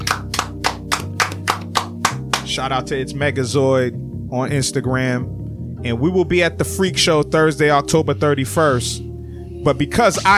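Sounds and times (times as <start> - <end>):
steady rhythmic hand claps: 0.0 - 2.7
speech: 2.6 - 10.3.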